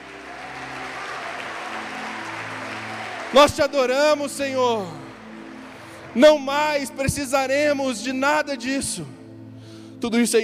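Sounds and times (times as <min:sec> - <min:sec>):
audience applause: 0:00.0 - 0:06.2
speech: 0:03.3 - 0:05.0, 0:06.1 - 0:09.2, 0:10.0 - 0:10.4.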